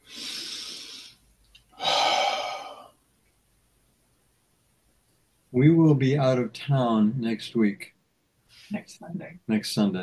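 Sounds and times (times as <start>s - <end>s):
deep breath: 0.0s - 3.0s
speech: 5.6s - 8.0s, 8.7s - 10.0s.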